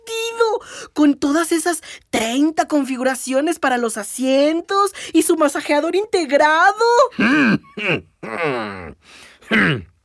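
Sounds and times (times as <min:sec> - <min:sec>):
speech: 0:00.6 - 0:09.9
man clearing his throat in a Lincoln Aviator: 0:07.1 - 0:09.9.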